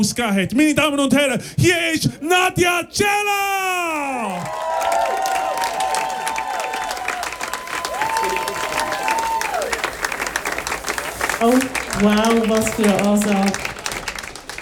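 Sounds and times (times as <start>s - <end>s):
speech: 0.0s - 4.6s, 11.4s - 13.7s
audience cheering: 3.8s - 14.6s
audience applause: 4.3s - 14.6s.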